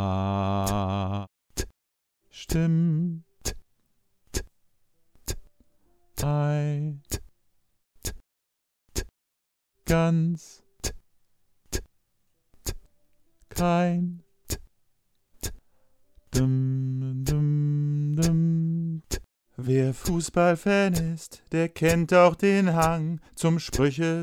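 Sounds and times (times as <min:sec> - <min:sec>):
solo bass voice singing: 0:00.0 - 0:01.3, 0:02.4 - 0:03.6, 0:06.2 - 0:07.3, 0:09.9 - 0:11.0, 0:13.5 - 0:14.2, 0:16.3 - 0:24.2.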